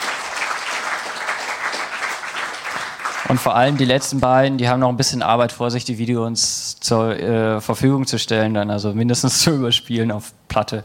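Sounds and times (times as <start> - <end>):
audience applause: 0.0 - 4.2
speech: 3.3 - 10.8.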